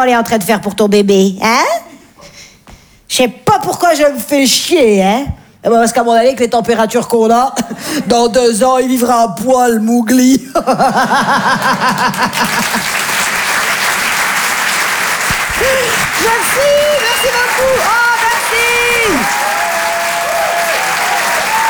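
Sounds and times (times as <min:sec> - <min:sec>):
speech: 0:00.0 - 0:01.8, 0:03.1 - 0:13.3, 0:15.6 - 0:18.6
laughter: 0:10.6 - 0:13.4
theatre audience applause: 0:11.4 - 0:21.6.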